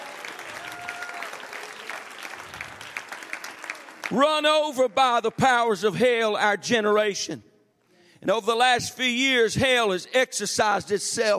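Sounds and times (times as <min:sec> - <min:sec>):
audience clapping hands: 0:00.0 - 0:06.0
speech: 0:04.1 - 0:07.5, 0:08.2 - 0:11.3.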